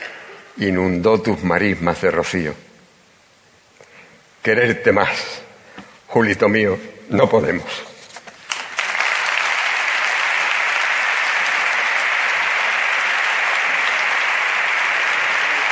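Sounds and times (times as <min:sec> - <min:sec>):
speech: 0:00.6 - 0:02.7, 0:04.4 - 0:05.4, 0:06.1 - 0:07.9
audience ovation, applause: 0:08.5 - 0:15.7.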